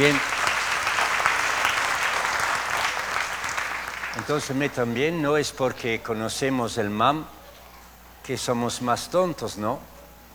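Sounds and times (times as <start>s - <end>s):
speech: 0.0s - 0.3s, 4.2s - 7.4s, 8.2s - 9.9s
applause for a girl's reading: 0.0s - 4.8s.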